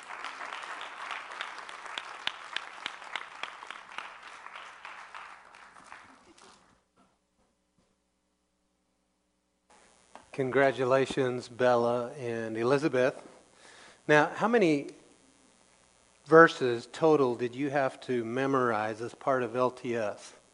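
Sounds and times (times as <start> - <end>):
audience applause for two children after a closing prayer: 0.0 - 6.6
speech: 10.4 - 13.3, 14.1 - 15.0, 16.3 - 20.4.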